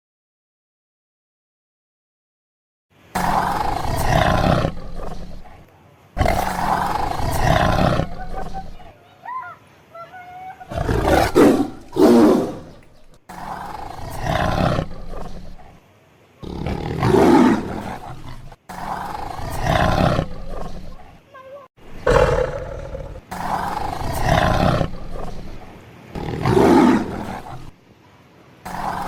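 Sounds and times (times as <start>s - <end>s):
tiger roaring: 3.2s - 9.0s, 10.7s - 15.8s, 16.4s - 21.2s, 22.0s - 27.8s, 28.6s - 29.0s.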